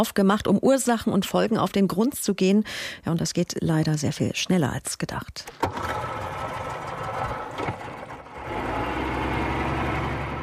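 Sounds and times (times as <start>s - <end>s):
speech: 0.0s - 6.1s
outboard motor on an inflatable boat running: 5.6s - 10.4s.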